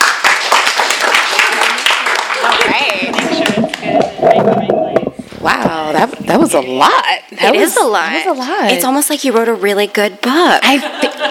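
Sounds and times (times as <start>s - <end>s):
audience applause: 0.0s - 4.6s
speech: 5.5s - 11.1s
laughter: 10.6s - 11.3s.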